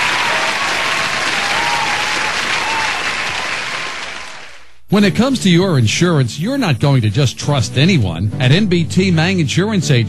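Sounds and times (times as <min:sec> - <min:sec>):
audience applause: 0:00.0 - 0:04.8
speech: 0:04.9 - 0:10.0.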